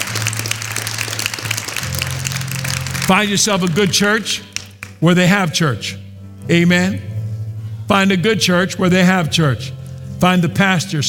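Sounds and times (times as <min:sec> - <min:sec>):
church audience clapping hands to welcome newcomers: 0:00.0 - 0:05.0
speech: 0:03.1 - 0:07.1, 0:07.9 - 0:11.0.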